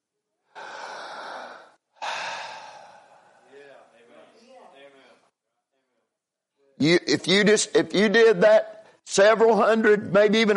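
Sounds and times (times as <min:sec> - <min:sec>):
person breathing: 0:00.5 - 0:03.7
speech: 0:06.8 - 0:10.5.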